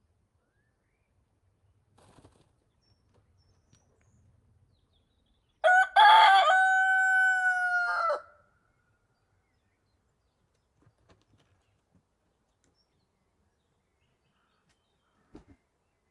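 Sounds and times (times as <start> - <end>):
rooster crowing in the countryside during the day: 5.6 - 8.4.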